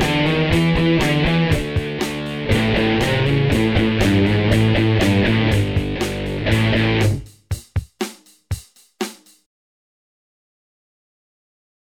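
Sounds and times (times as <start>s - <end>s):
basic guitar: 0.0s - 7.6s.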